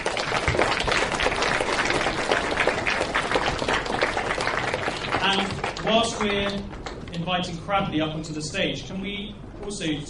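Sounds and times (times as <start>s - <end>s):
audience applause: 0.0s - 7.1s
speech: 6.0s - 10.0s.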